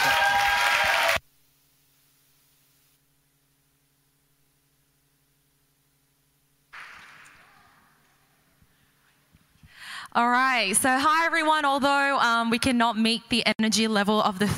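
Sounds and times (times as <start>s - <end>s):
audience clapping: 0.0s - 1.2s, 6.8s - 8.2s
speech: 10.1s - 14.5s.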